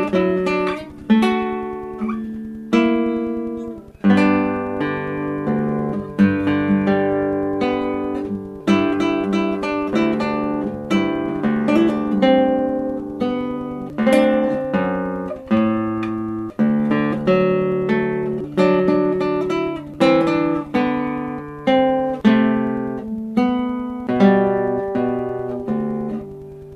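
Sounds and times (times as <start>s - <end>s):
guitar in Caazapá: 0.0s - 26.7s.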